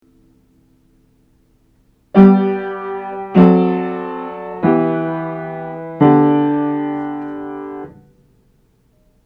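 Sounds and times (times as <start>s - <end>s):
seventh chords for aural training: 2.2s - 8.0s.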